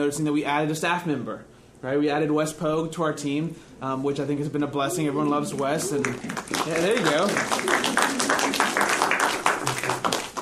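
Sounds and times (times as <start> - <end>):
speech: 0.0 - 8.4
pity applause: 5.9 - 10.4.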